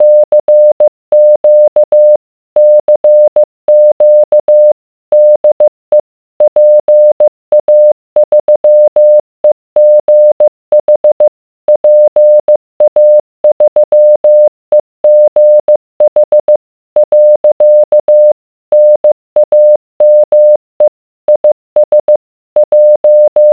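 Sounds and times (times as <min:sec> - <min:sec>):
morse code beeps: 0:00.0 - 0:09.2, 0:09.8 - 0:23.5.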